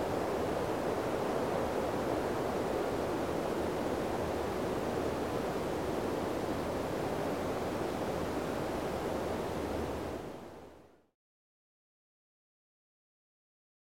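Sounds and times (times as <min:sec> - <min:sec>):
medium wind in trees: 0:00.0 - 0:11.1.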